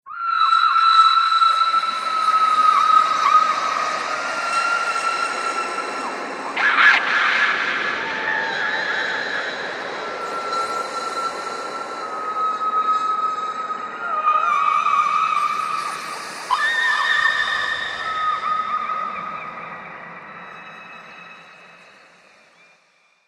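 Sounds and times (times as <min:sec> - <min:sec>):
horror screams: 0:00.0 - 0:22.8
scary horror soundscape: 0:00.1 - 0:22.8.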